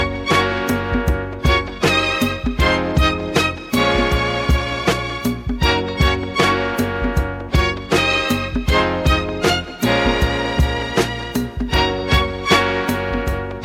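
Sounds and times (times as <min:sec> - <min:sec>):
music in B flat minor at 157 bpm: 0:00.0 - 0:13.6.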